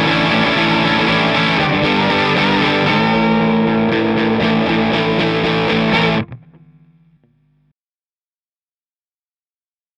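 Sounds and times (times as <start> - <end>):
Maybach Lester Junior Double Cut electric guitar with overdrive, bridge pickup: 0.0 - 7.1.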